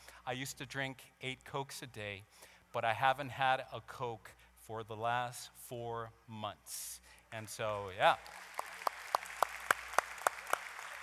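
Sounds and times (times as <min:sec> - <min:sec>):
speech: 0:00.3 - 0:08.6
audience clapping: 0:07.5 - 0:11.0.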